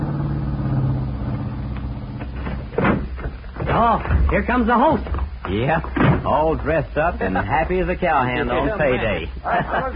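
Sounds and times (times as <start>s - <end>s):
car engine rumbling while pulling in to park: 0.0s - 9.9s
speech: 3.8s - 9.9s
laughter: 8.7s - 9.9s.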